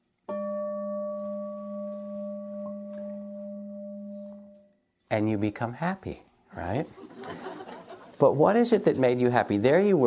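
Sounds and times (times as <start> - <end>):
meditation bell ringing: 0.3 - 4.9
speech: 5.1 - 7.5, 8.2 - 10.0
laughter: 6.8 - 9.2.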